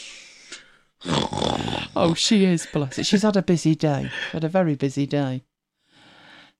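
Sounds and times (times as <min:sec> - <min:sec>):
small dog snoring: 0:01.0 - 0:02.2
speech: 0:02.0 - 0:05.5.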